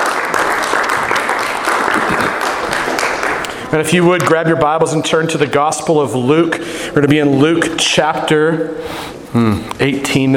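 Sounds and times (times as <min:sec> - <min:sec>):
audience round of applause: 0:00.0 - 0:03.7
speech: 0:03.7 - 0:10.3.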